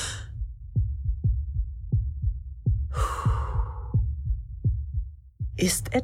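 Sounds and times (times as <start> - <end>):
irregular heartbeat through a stethoscope: 0.0 - 6.0
breath rushing: 2.9 - 4.1.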